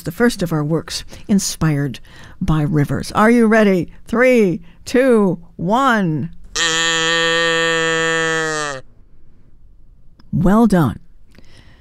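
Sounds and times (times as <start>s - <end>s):
speech: 0.0s - 6.4s, 10.4s - 11.0s
audience imitating cow mooing: 6.6s - 8.8s.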